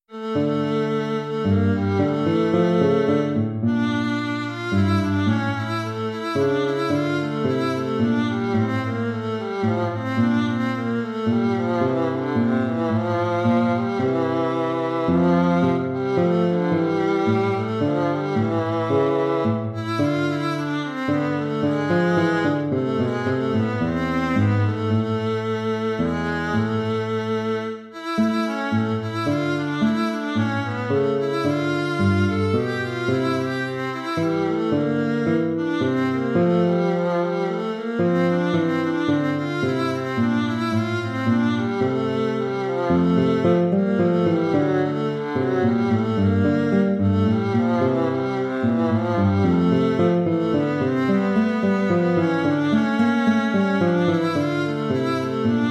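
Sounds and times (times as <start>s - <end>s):
baroque dance piece: 0.0s - 55.6s.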